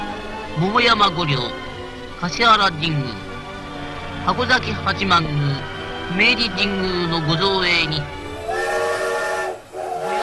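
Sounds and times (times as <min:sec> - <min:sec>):
speech: 0:00.6 - 0:03.2, 0:04.2 - 0:08.2
train whistle: 0:08.2 - 0:10.2.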